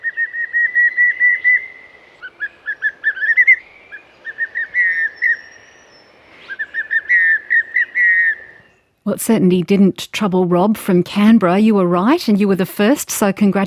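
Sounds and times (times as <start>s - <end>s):
pallid cuckoo whistling: 0.0s - 5.9s, 6.5s - 8.7s
speech: 9.0s - 13.6s.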